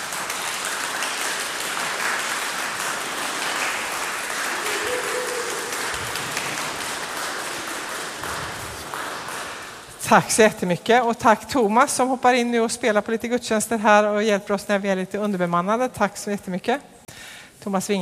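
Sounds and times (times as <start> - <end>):
applause for the musicians: 0.0 - 10.0
speech: 10.1 - 16.9, 17.6 - 17.9.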